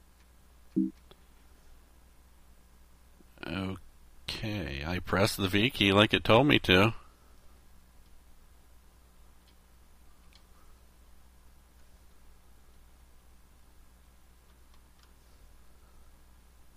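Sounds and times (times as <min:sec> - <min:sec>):
computer beeping: 0:00.8 - 0:01.0
speech: 0:05.1 - 0:07.0.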